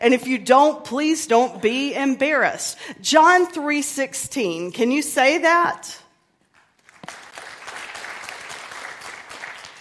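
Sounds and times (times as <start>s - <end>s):
speech: 0.0s - 6.0s
audience clapping: 6.5s - 9.7s.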